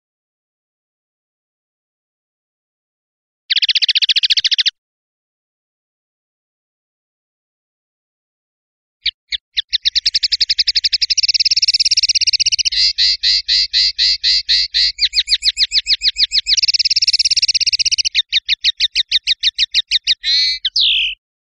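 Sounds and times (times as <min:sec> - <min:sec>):
European goldfinch singing: 0:03.5 - 0:04.7, 0:09.0 - 0:21.2.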